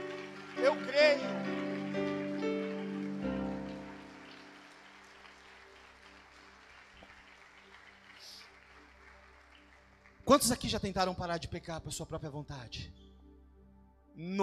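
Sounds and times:
sustained keyboard chord: 0.0 - 6.2
crowd applauding: 0.0 - 11.2
speech: 0.6 - 1.6, 10.3 - 13.0, 14.2 - 14.4.

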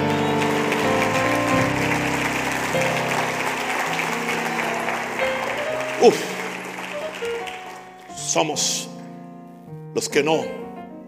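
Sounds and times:
loud audience applause: 0.0 - 8.4
speech: 6.0 - 6.4, 8.4 - 8.9, 10.0 - 10.7.

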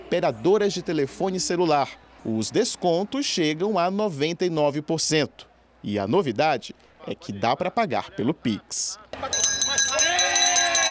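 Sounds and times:
speech: 0.1 - 9.4
bell rung after reaching a debt agreement: 9.2 - 10.8.

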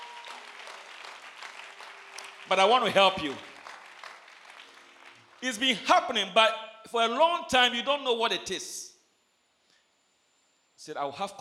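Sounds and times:
audience applause: 0.0 - 5.9
speech: 2.5 - 3.5, 5.4 - 8.9, 10.8 - 11.4.

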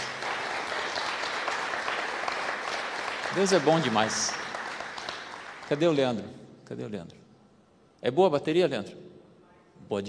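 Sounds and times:
audience applause: 0.0 - 6.0
speech: 3.4 - 4.4, 5.7 - 7.2, 8.0 - 9.0, 9.9 - 10.0.

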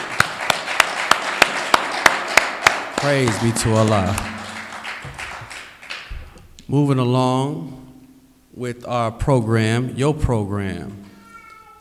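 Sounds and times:
audience applause: 0.0 - 6.1
sharp louder claps at a regular beat: 0.0 - 6.4
speech: 3.0 - 4.3, 6.7 - 7.8, 8.6 - 11.1.

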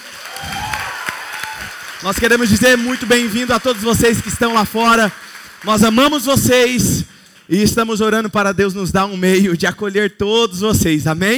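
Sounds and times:
audience applause: 0.0 - 7.6
speech: 2.0 - 11.3.

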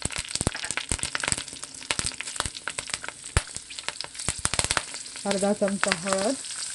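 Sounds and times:
mustard seeds and chilli sizzling in hot oil: 0.0 - 6.7
speech: 5.2 - 6.5.

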